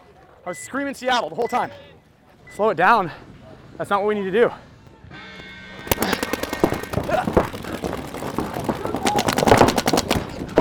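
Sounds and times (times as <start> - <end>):
speech: 0.4 - 4.7
video game gunfire: 5.8 - 10.6.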